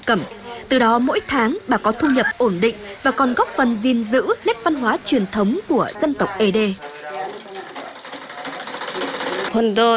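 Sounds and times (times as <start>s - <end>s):
speech: 0.1s - 6.9s, 9.5s - 9.9s
sewing machine stitching brocade garments: 6.8s - 9.7s.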